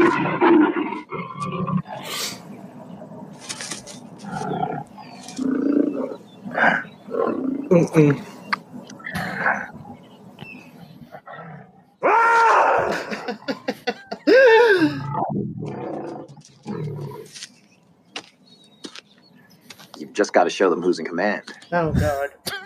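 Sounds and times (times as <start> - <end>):
tiger breathy growls and huffs: 0.0 - 3.3, 4.1 - 9.9, 14.3 - 17.4
tiger roaring: 0.0 - 8.0, 8.8 - 10.0, 10.8 - 13.2, 14.9 - 17.3
speech: 7.8 - 8.3, 20.4 - 22.4
laughter: 12.8 - 15.1, 22.4 - 22.6.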